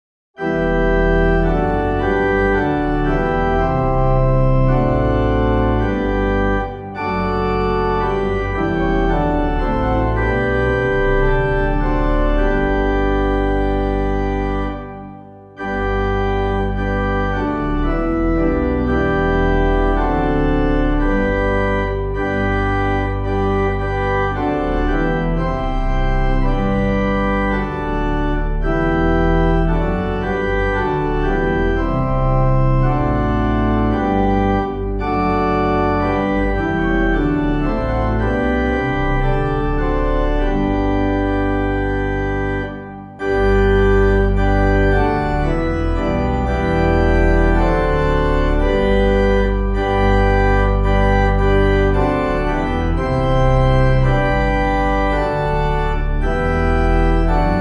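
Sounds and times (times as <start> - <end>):
organ playing a hymn: 0.4 - 57.5.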